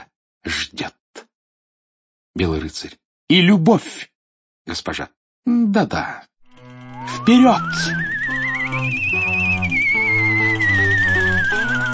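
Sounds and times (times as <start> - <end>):
speech: 0.4 - 1.0, 2.4 - 4.1, 4.7 - 6.3, 7.0 - 8.0
sustained shifting musical chords: 6.5 - 11.9
flying mortar whistling through the air: 7.0 - 11.9.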